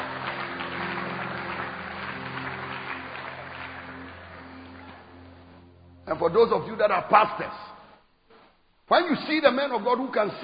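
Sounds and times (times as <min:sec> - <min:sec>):
audience clapping hands: 0:00.0 - 0:05.6
speech: 0:06.1 - 0:07.7, 0:08.9 - 0:10.4.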